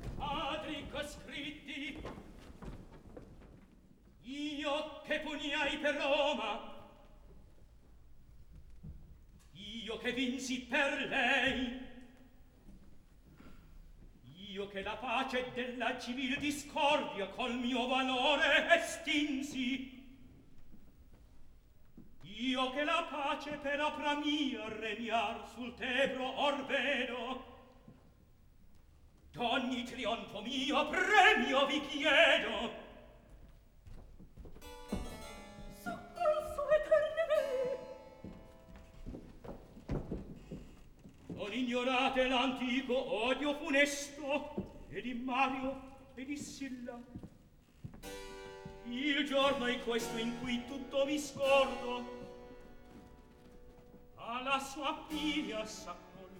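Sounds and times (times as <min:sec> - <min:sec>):
opera recitative: 0:00.0 - 0:02.8, 0:04.2 - 0:07.3, 0:09.4 - 0:12.6, 0:14.2 - 0:20.5, 0:22.2 - 0:28.0, 0:29.3 - 0:33.3, 0:35.6 - 0:39.9, 0:41.3 - 0:47.4, 0:48.7 - 0:56.3.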